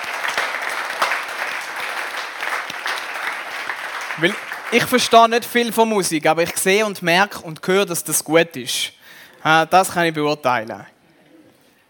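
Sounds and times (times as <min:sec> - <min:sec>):
audience applause: 0:00.0 - 0:05.8
speech: 0:04.2 - 0:10.9.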